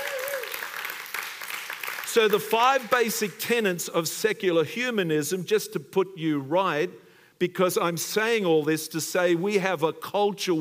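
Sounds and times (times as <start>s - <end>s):
audience hand clapping: 0.0s - 3.4s
speech: 2.1s - 10.6s.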